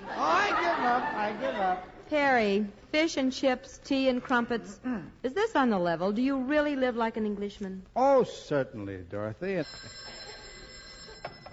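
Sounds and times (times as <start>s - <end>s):
laughter: 0.0s - 1.9s
speech: 1.3s - 10.2s
telephone bell ringing: 9.6s - 11.5s.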